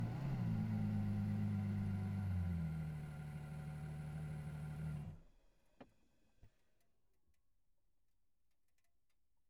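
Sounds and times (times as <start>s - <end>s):
Ferrari F12 engine starting, driving, reversing and stopping, recorded onboard: 0.0s - 5.2s.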